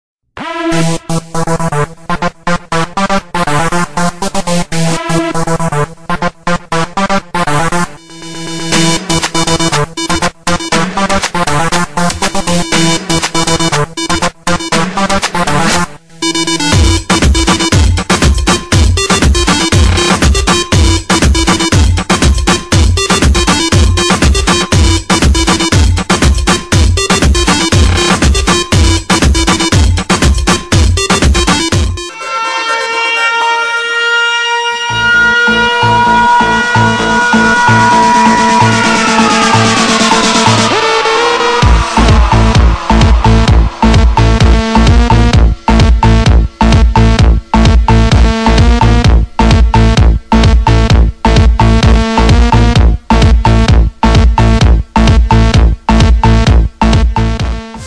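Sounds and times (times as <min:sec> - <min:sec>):
disco techno mix in a car: 0:00.4 - 0:57.8.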